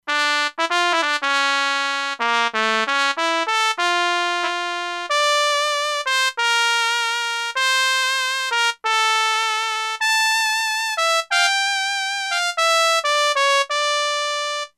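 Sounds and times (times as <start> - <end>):
trumpet: 0.1 - 14.7.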